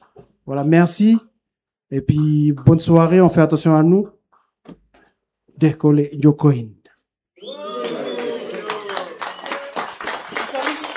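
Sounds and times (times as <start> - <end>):
speech: 0.5 - 1.3, 1.9 - 4.8, 5.6 - 6.8
crowd applause: 7.4 - 10.9
voices cheering and calling out: 7.4 - 10.9.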